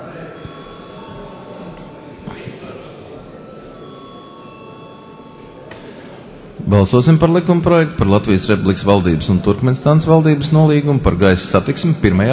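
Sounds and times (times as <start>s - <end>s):
parliament chamber electric bell ringing: 0.0s - 10.3s
murmuring voices: 0.0s - 12.3s
speech: 6.7s - 12.3s.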